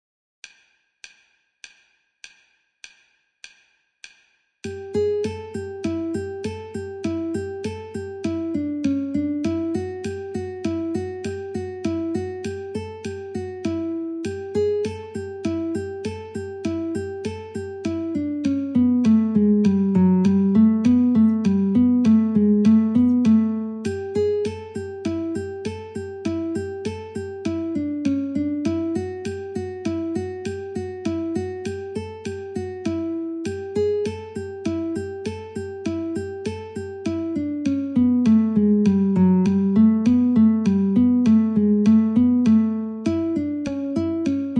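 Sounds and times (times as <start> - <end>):
guitar metronome at 50: 4.6 - 44.5.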